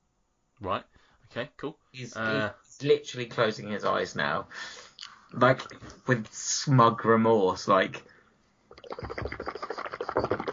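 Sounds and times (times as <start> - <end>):
speech: 0.6 - 8.2, 8.9 - 9.5
rinsing mouth out with water: 8.7 - 10.5.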